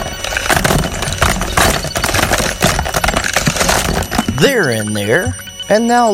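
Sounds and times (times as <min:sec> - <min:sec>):
shuffle drum spinning: 0:00.0 - 0:04.7
speech: 0:04.4 - 0:06.1.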